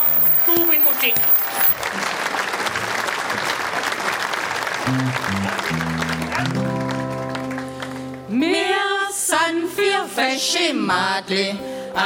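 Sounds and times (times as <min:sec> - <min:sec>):
speech: 0:00.5 - 0:02.2, 0:04.9 - 0:06.7, 0:09.7 - 0:12.0
audience applause for a premiere: 0:00.7 - 0:08.2.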